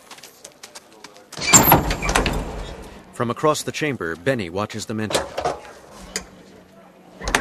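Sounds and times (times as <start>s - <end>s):
heavy steel door being shut: 1.4s - 2.9s, 7.2s - 7.3s
speech: 3.2s - 5.6s.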